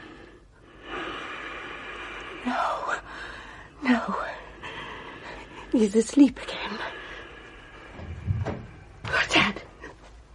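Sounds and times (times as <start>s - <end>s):
speech: 2.4s - 4.3s, 5.8s - 6.8s
door downstairs opening or closing: 8.0s - 8.9s.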